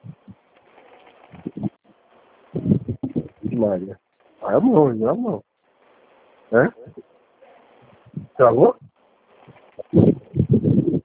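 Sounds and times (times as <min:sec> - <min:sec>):
rumbling wind gusts buffeting the microphone: 0:02.6 - 0:03.7, 0:08.0 - 0:08.9, 0:09.8 - 0:11.0
speech: 0:03.6 - 0:05.5, 0:06.5 - 0:07.1, 0:08.4 - 0:08.9.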